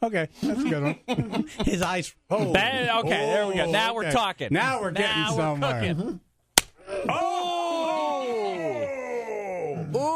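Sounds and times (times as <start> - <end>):
speech: 0.0 - 6.2
tortilla slapped against a man's face: 6.6 - 6.8
groan-like vocal cry sliding down in pitch: 6.8 - 10.1.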